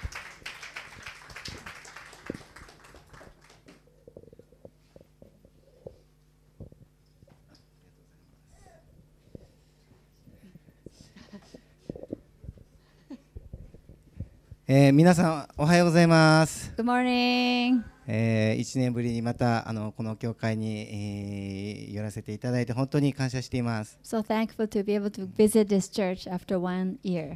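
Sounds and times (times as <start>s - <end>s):
audience applause: 0.0s - 3.8s
speech: 14.7s - 27.3s.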